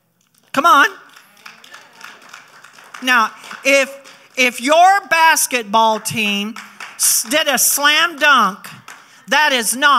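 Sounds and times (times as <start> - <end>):
speech: 0.6 - 1.0, 3.0 - 9.9
audience applauding: 1.0 - 5.0, 6.5 - 9.2.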